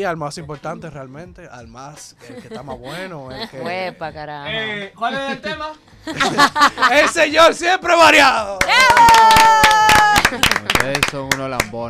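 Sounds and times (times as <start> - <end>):
speech: 0.0 - 11.8
laughter: 2.2 - 3.9, 6.0 - 7.5
audience clapping: 8.5 - 11.8.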